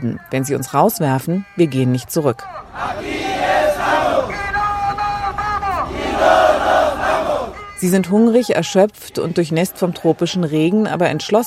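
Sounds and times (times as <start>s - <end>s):
speech: 0.0s - 3.2s, 7.8s - 11.4s
crowd chanting in chorus: 2.4s - 10.8s.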